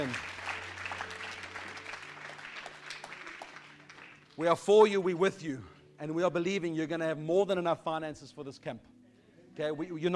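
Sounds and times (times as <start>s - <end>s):
speech: 0.0s - 0.3s, 4.4s - 8.9s, 9.6s - 10.1s
audience applauding: 0.0s - 4.5s.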